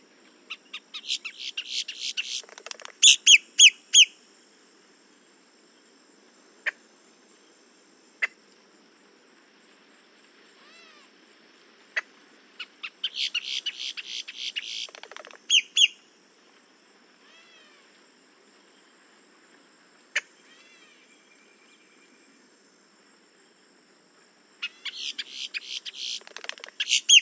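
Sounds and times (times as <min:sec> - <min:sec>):
boat-tailed grackle Quiscalus major calls: 0:00.5 - 0:04.1, 0:12.0 - 0:16.0, 0:24.6 - 0:27.1.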